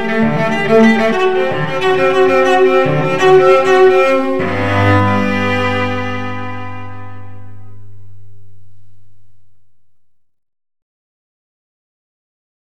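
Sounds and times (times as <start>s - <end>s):
unaccompanied cello suite: 0.0s - 10.2s.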